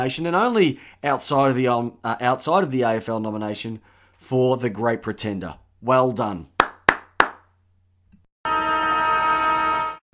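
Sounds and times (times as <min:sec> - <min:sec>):
speech: 0:00.0 - 0:06.5
end-of-game siren: 0:08.4 - 0:10.1.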